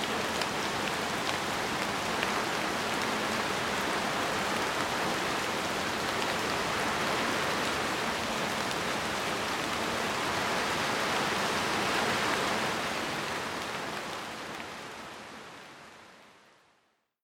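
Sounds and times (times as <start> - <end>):
rain at night: 0.0 - 17.1.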